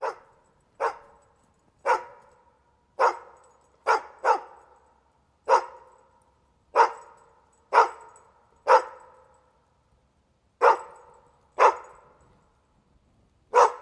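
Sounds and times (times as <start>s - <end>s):
dog barking: 0.0s - 1.2s, 1.8s - 2.3s, 3.0s - 4.7s, 5.5s - 6.0s, 6.8s - 9.3s, 10.6s - 12.1s, 13.5s - 13.8s.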